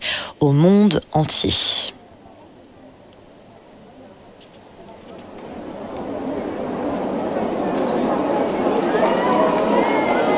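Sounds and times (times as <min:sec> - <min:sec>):
speech: 0:00.4 - 0:02.0
scattered cheers and voices: 0:05.0 - 0:10.3
crowd of faithful applauding in square: 0:05.7 - 0:10.3.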